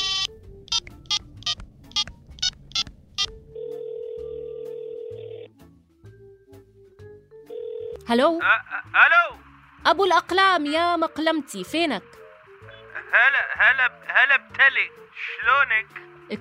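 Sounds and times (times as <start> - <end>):
buzzing ringback tone of an outgoing phone call: 0.0 - 5.5
speech: 8.1 - 12.2, 13.1 - 16.3
phone dialing beeps: 12.6 - 13.0.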